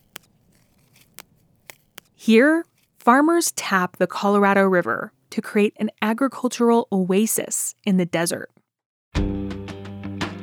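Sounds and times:
alfalfa plucked out of the ground in a ditch: 0.0s - 3.1s
speech: 2.2s - 8.6s.

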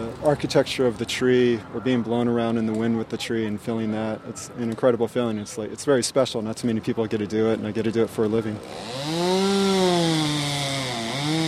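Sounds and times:
speech: 0.2s - 9.5s
chainsaw cutting through a dead tree branch: 8.6s - 11.4s.

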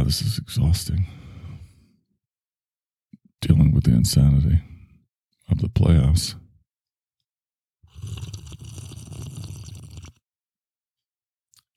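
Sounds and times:
speech: 0.1s - 1.2s, 3.4s - 4.7s, 5.5s - 6.4s
fizzy water bubbling: 7.9s - 10.2s.

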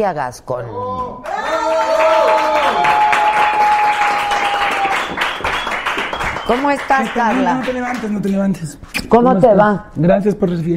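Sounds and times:
speech: 0.0s - 3.1s, 6.5s - 10.7s
audience applause: 1.2s - 8.4s.

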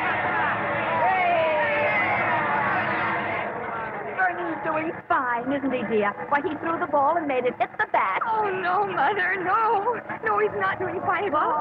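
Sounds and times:
large baseball stadium crowd cheering: 0.0s - 5.0s
speech: 5.4s - 11.5s.

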